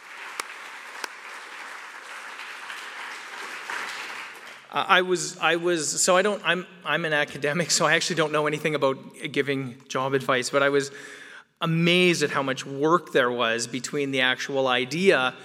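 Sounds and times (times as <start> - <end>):
audience applause: 0.4 - 4.6
speech: 4.7 - 15.4.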